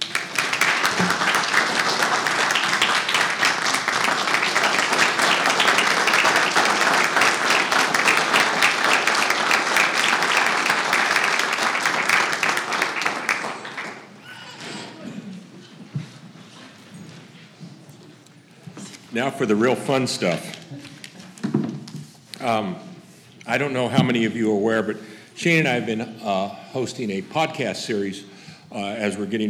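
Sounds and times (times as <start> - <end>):
audience applause: 0.0 - 14.5
speech: 19.4 - 20.6, 22.4 - 22.9, 23.5 - 29.4.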